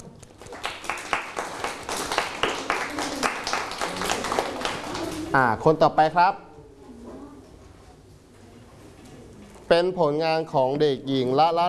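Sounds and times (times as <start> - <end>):
children clapping in a classroom: 0.2 - 5.4
speech: 5.3 - 6.5, 9.7 - 11.6.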